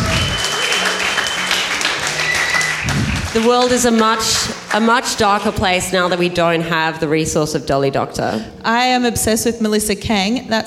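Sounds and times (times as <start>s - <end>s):
audience applause: 0.0s - 6.4s
speech: 3.4s - 10.6s.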